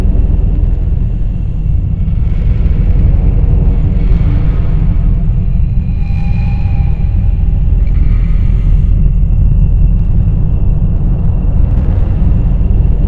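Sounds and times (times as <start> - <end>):
rumble loop: 0.0 - 13.0.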